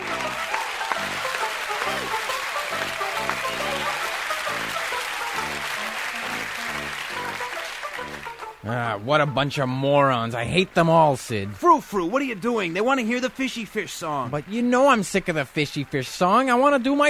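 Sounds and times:
audience applause: 0.0 - 8.6
speech: 8.7 - 17.0.

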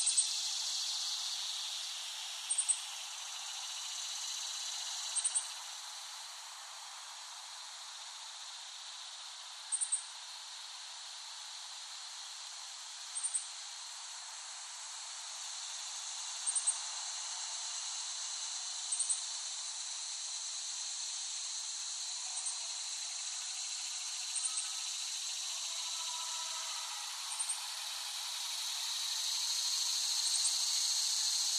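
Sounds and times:
cicada chorus: 0.0 - 31.5.

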